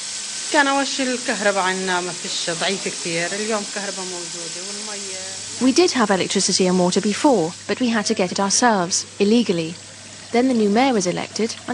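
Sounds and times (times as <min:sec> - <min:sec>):
pot bubbling on the stove: 0:00.0 - 0:11.7
speech: 0:00.5 - 0:11.7
tap running: 0:01.0 - 0:11.7.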